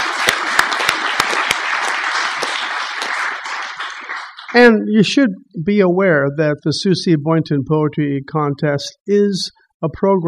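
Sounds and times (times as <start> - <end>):
audience applause: 0.0 - 4.8
speech: 4.5 - 10.2.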